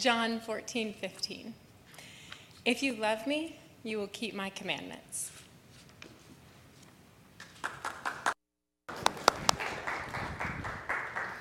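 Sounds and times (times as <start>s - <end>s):
speech: 0.0s - 1.6s, 2.6s - 5.4s
audience clapping: 7.4s - 11.3s.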